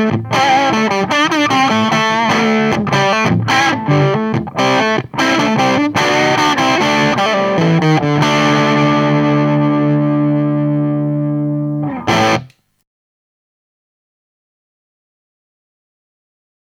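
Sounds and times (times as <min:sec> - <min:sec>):
electric guitar with SH4 bridge pickup through three-channel amplifier: 0:00.0 - 0:12.6.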